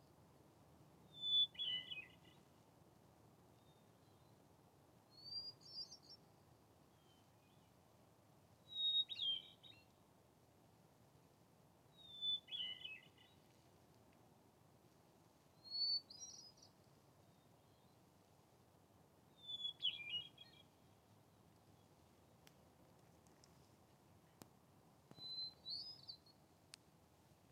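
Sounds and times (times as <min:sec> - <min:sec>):
hermit thrush singing: 0:01.1 - 0:02.4, 0:05.1 - 0:07.7, 0:08.6 - 0:09.9, 0:11.9 - 0:13.4, 0:15.6 - 0:18.0, 0:19.3 - 0:20.9, 0:25.1 - 0:26.4.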